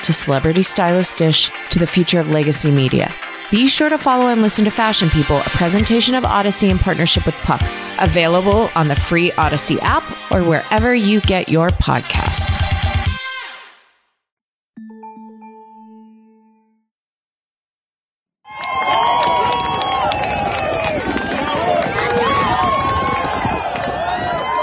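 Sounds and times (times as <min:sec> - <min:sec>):
speech: 0:00.0 - 0:12.6
brief tonal chime: 0:14.8 - 0:16.9
crowd cheering at a lacrosse game: 0:18.5 - 0:24.6.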